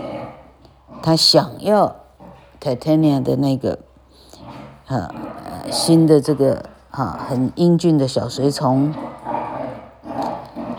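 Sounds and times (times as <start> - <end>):
small dogs playing indoors: 0.0 - 10.7
speech: 1.0 - 2.0, 2.6 - 3.9, 4.9 - 9.1.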